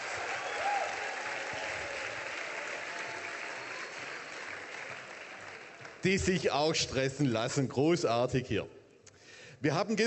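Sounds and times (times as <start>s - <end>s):
audience applause: 0.0s - 6.4s
speech: 6.0s - 8.8s, 9.6s - 10.0s.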